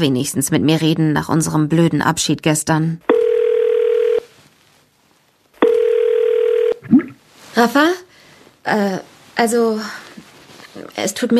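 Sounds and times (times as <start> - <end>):
speech: 0.0 - 3.2, 7.6 - 8.0, 8.7 - 10.0, 10.8 - 11.3
ringing tone of an outgoing telephone call: 3.1 - 4.3, 5.6 - 6.8.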